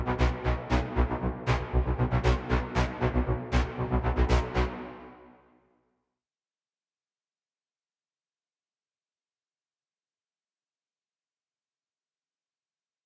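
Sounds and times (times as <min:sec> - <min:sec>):
heavy blades synth: 0:00.0 - 0:05.4.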